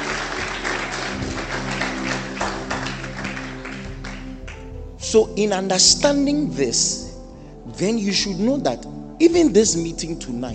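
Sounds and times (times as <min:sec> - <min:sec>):
audience clapping: 0:00.0 - 0:04.8
speech: 0:05.1 - 0:07.0, 0:07.8 - 0:10.5.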